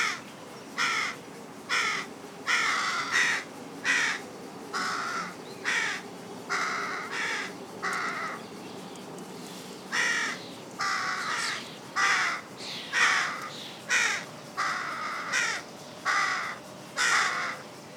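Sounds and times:
Carrion crow Corvus corone giving harsh grating caws: 0.8s - 8.4s, 9.9s - 17.6s.

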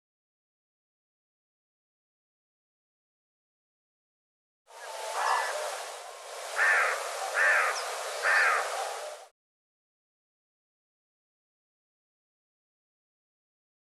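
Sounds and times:
bird harsh buzzy calls: 6.6s - 8.8s.

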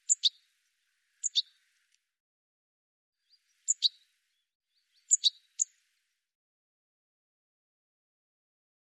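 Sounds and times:
high bird chirps: 5.0s - 5.7s.

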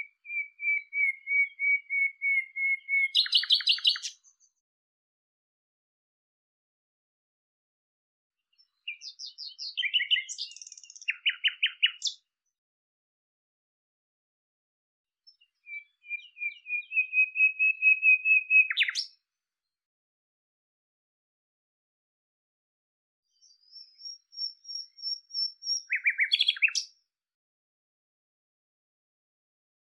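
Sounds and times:
bird calls: 0.0s - 4.4s, 8.6s - 12.2s, 15.3s - 19.1s, 23.4s - 26.9s.

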